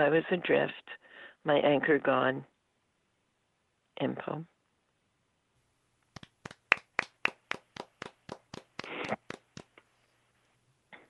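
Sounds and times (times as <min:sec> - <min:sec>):
speech: 0:00.0 - 0:02.5, 0:04.0 - 0:04.5
short round of applause: 0:06.2 - 0:09.7.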